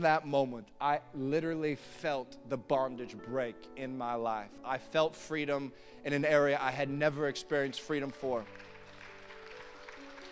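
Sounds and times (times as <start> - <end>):
speech: 0.0 - 8.7
audience clapping: 7.7 - 10.3.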